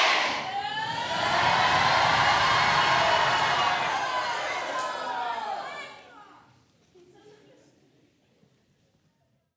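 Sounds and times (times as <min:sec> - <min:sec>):
people cheering: 0:00.1 - 0:06.4.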